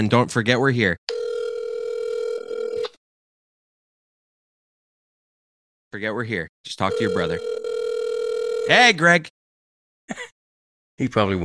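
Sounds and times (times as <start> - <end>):
speech: 0.0 - 1.0, 5.9 - 7.6, 8.7 - 9.4, 11.0 - 11.4
phone call ringing on speakerphone: 1.1 - 2.9, 6.9 - 8.9.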